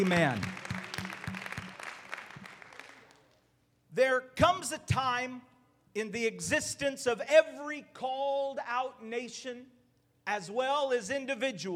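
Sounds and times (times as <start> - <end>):
speech: 0.0 - 0.6, 4.0 - 11.7
audience clapping in praise: 0.0 - 3.4.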